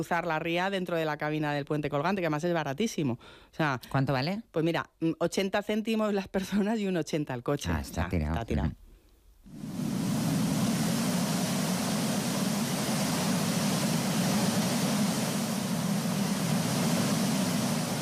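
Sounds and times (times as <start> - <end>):
speech: 0.0 - 8.8
sea waves: 9.5 - 18.0.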